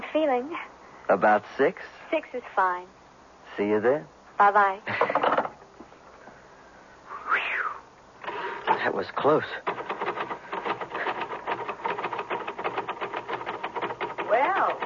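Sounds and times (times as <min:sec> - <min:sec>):
speech: 0:00.1 - 0:05.1, 0:08.8 - 0:09.8
stuck keys clacking as they are worked free: 0:08.2 - 0:14.8.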